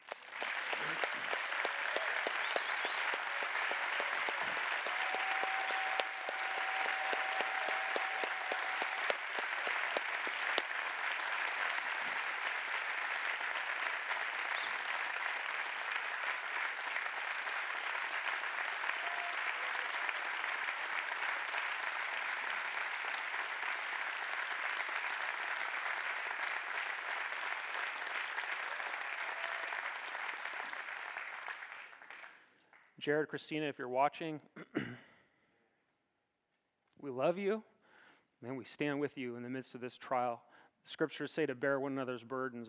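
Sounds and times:
audience round of applause: 0.0s - 32.8s
speech: 33.0s - 34.6s, 37.2s - 37.7s, 38.4s - 42.6s.

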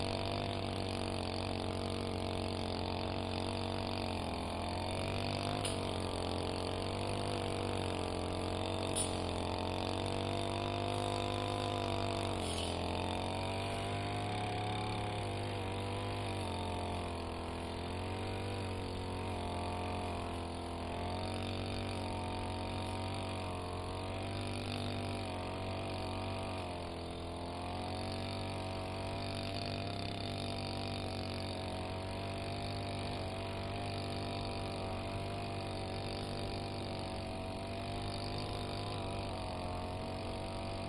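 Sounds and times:
brush cutter cutting grass in a sweet potato field: 0.0s - 40.8s.

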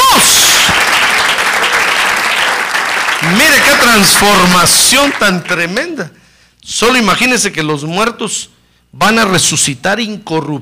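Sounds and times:
church congregation applauding in praise during a sermon: 0.0s - 6.0s
speech: 3.3s - 10.6s.

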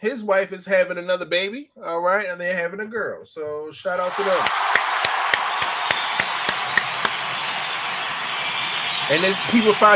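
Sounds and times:
speech: 0.0s - 4.8s, 9.1s - 9.9s
round of clapping: 4.1s - 9.9s.

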